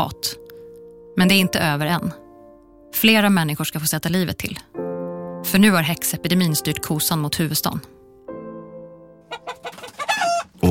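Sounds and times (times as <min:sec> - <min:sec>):
speech: 0:00.0 - 0:00.4, 0:01.2 - 0:02.2, 0:02.9 - 0:04.8, 0:05.4 - 0:08.0
hens clucking on a slushy spring street in 17th-century Stockholm: 0:09.3 - 0:10.6.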